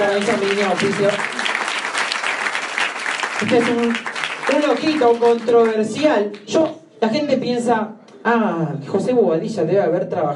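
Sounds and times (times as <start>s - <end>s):
speech: 0.0s - 1.4s, 3.4s - 10.3s
audience applause: 0.0s - 6.0s.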